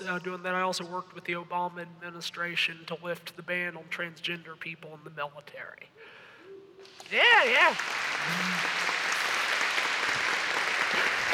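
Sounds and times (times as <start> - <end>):
speech: 0.1 - 6.2, 6.8 - 8.9
audience applause: 6.8 - 11.3.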